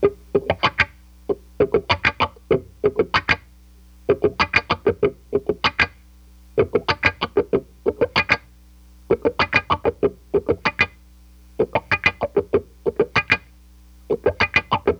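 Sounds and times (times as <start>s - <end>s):
funk guitar with wah: 0.0s - 3.4s, 4.1s - 5.9s, 6.6s - 8.5s, 9.1s - 11.0s, 11.6s - 13.5s, 14.1s - 14.9s.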